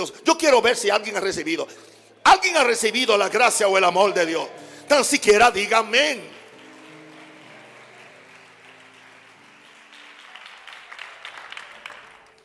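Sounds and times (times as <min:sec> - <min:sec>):
speech: 0:00.0 - 0:06.4
audience applause: 0:05.6 - 0:12.4.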